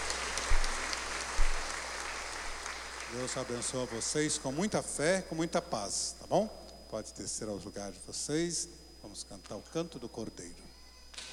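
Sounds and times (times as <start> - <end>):
round of applause: 0.0 - 4.4
speech: 3.1 - 10.7.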